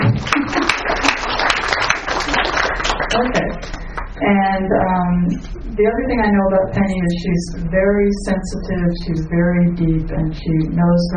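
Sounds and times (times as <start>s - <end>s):
audience applause at a talk: 0.0s - 4.1s
speech: 3.1s - 11.1s.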